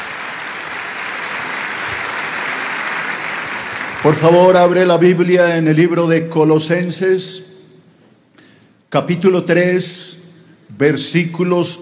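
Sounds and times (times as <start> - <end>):
crowd applause: 0.0 - 4.3
speech: 4.0 - 7.5, 8.9 - 10.2, 10.8 - 11.7.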